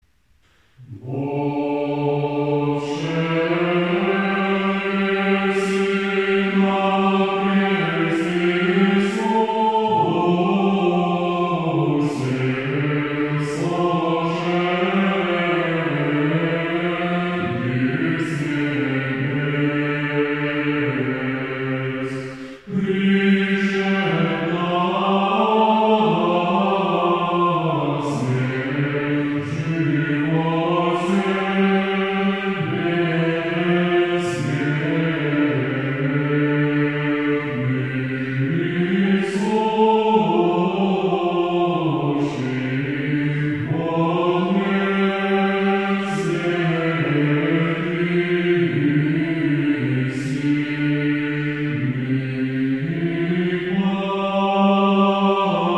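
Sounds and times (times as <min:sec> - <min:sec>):
Orthodox stichera chant in tone 8: 0:00.4 - 0:55.7.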